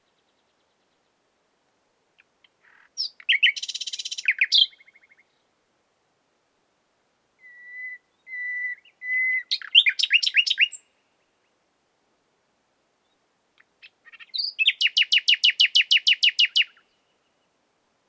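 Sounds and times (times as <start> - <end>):
common nightingale Luscinia megarhynchos singing: 2.2 - 5.5, 7.4 - 11.5, 13.0 - 17.5.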